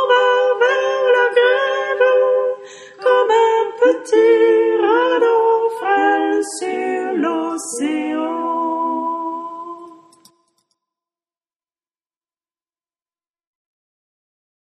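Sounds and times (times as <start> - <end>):
sopranos singing: 0.0 - 10.2.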